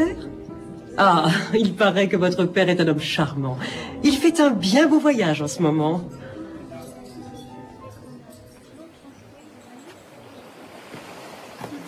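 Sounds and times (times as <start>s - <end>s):
speech: 1.0s - 6.3s
quiet talk: 5.7s - 10.9s
sea waves washing against the seafront at Balbec: 8.7s - 11.8s.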